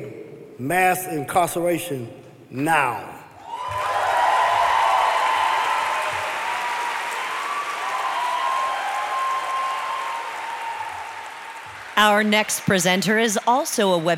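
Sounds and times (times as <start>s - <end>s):
speech: 0.6s - 3.8s, 12.0s - 14.1s
large audience applauding at the Webby Awards ceremony: 3.4s - 14.1s.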